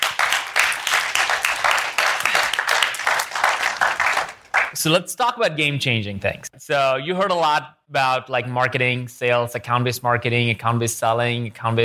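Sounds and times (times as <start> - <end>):
round of applause: 0.0 - 4.8
speech: 4.8 - 11.8.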